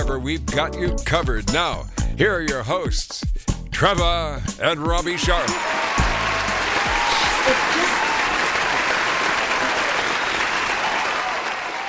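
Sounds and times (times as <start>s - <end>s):
speech: 0.1s - 6.0s, 7.4s - 8.0s
applause: 5.3s - 11.8s.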